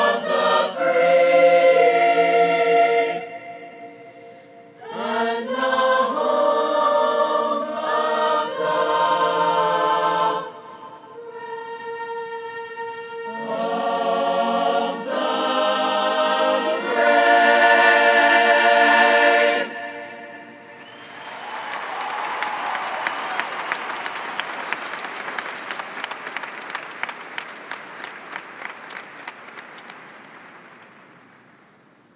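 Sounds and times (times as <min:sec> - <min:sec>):
chorus singing a national anthem: 0:00.0 - 0:21.0.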